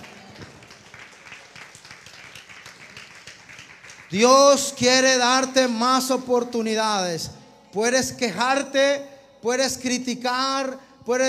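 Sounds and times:
crowd applauding: 0.0s - 4.3s
speech: 4.1s - 11.2s.

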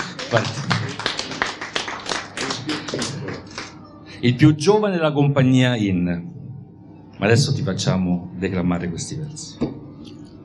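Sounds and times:
audience applause: 0.0s - 3.8s
speech: 0.3s - 0.7s, 4.2s - 6.3s, 7.2s - 9.7s.

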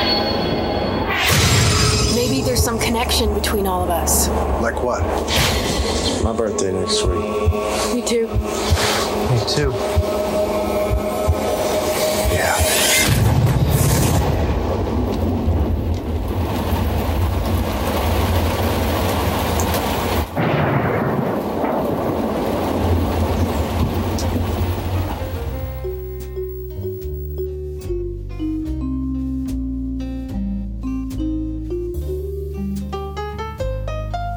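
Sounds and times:
sparse ringing tonal trailer music: 0.0s - 15.4s, 24.0s - 34.3s
deep rolling thunder in the Identity trailer: 0.8s - 26.1s
rain: 2.2s - 6.6s, 7.4s - 27.4s
speech: 2.6s - 10.4s.

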